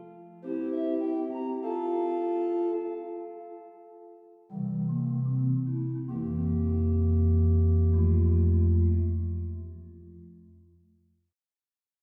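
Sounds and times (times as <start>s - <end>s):
hymn verse played on organ: 0.0s - 3.5s, 4.5s - 10.2s.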